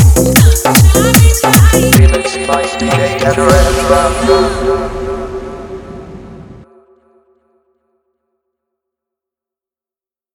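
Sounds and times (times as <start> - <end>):
hard bass dance mix: 0.0 - 6.2.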